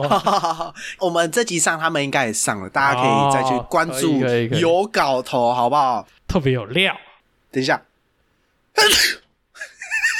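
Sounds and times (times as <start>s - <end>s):
speech: 0.0s - 7.9s, 8.8s - 9.2s
person sneezing: 8.8s - 9.3s.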